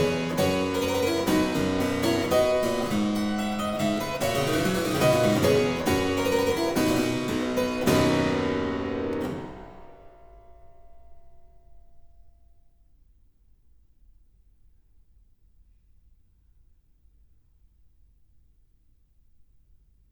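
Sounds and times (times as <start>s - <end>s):
harpsichord playing aria variations in C major: 0.0s - 10.9s.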